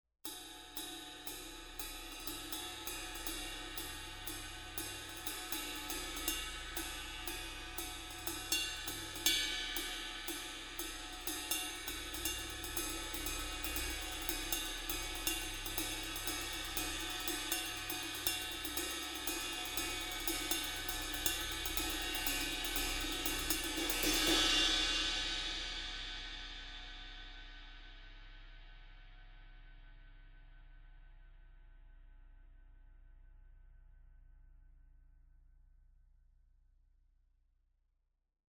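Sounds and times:
ride cymbal: 0:00.3 - 0:28.7.

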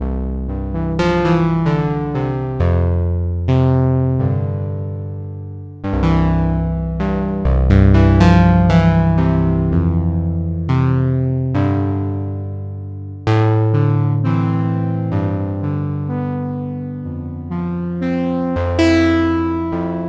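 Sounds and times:
Behringer UB-Xa synthesizer: 0:00.0 - 0:20.0.

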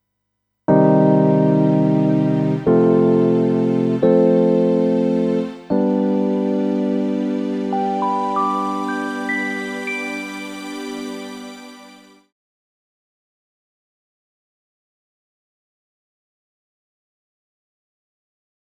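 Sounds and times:
electric piano: 0:00.7 - 0:12.0
strings: 0:00.8 - 0:12.3.

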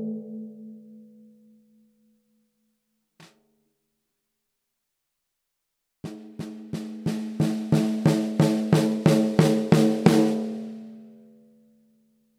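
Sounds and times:
14x65 oak snare drum: 0:06.1 - 0:10.9.

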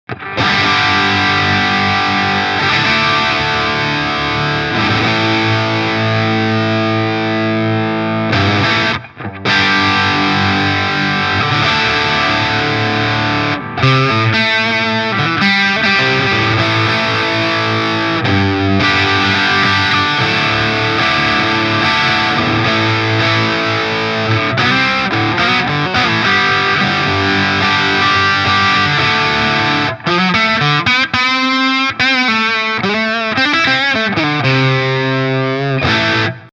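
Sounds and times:
FGN Neo Classic LS 30 guitar played at the bridge distorted: 0:00.0 - 0:36.5.

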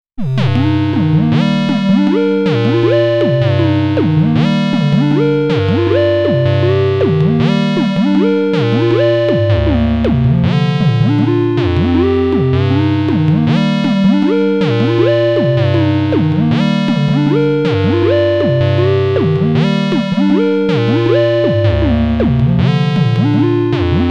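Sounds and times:
Dreadbox Polyend Medusa synthesizer sine melody: 0:00.2 - 0:24.0.

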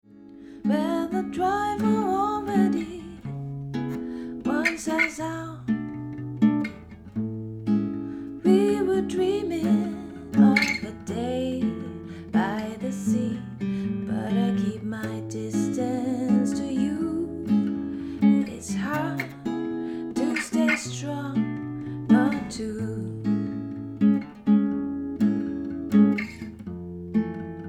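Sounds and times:
guitar recorded with capsule microphone: 0:00.0 - 0:27.6
person singing: 0:00.7 - 0:03.3, 0:08.4 - 0:21.4, 0:22.1 - 0:23.4.

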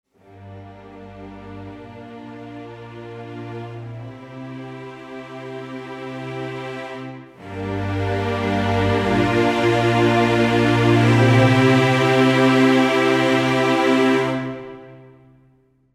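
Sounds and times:
full ensemble sustained: 0:00.2 - 0:15.3.

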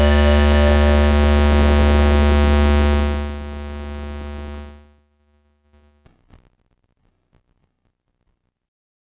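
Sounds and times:
mono synth: 0:00.0 - 0:03.7.

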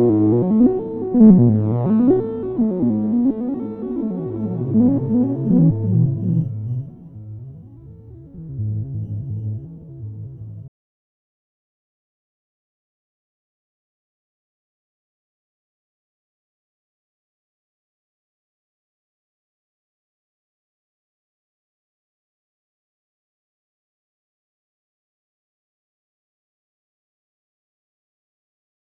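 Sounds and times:
detuned synthesizer with LFO motion: 0:00.1 - 0:10.7.

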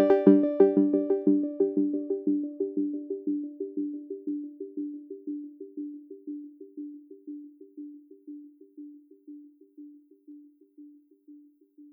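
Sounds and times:
iSEM synth arpeggio with volume distortion: 0:00.0 - 0:06.3.

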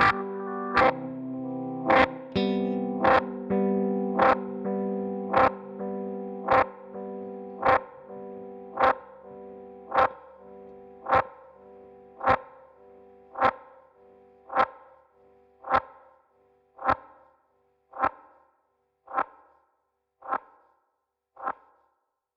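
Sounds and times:
Chase Bliss Audio Thermae delay pedal step trigger: 0:00.0 - 0:16.2, 0:16.8 - 0:17.3.

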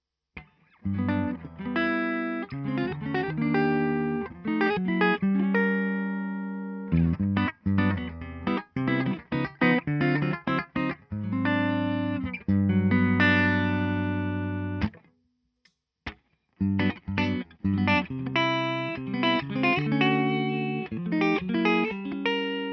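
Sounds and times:
clean humbucker electric guitar: 0:00.4 - 0:15.1, 0:16.6 - 0:22.7.

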